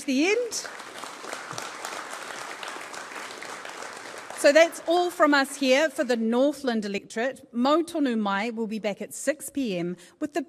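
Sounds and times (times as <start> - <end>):
speech: 0.0 - 0.8, 4.4 - 10.4
audience applause: 0.1 - 5.6.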